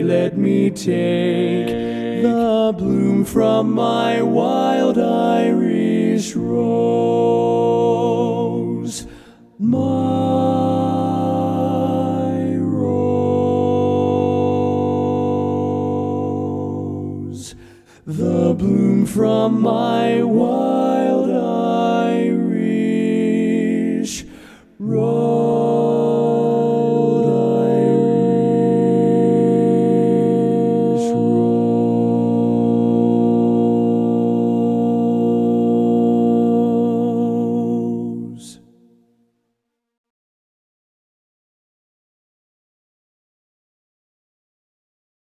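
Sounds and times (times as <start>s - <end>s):
lead vocal part of a learning track: 0.0s - 38.9s.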